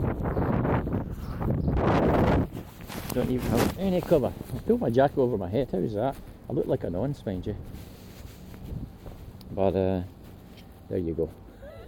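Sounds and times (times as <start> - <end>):
strong wind buffeting the microphone: 0.0 - 4.8, 8.5 - 9.2
speech: 3.2 - 7.9, 9.6 - 10.2, 10.9 - 11.4.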